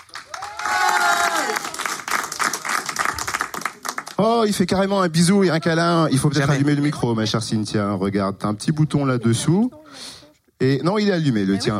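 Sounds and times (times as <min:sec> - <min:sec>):
audience applause: 0:00.0 - 0:04.3
speech: 0:04.2 - 0:11.7.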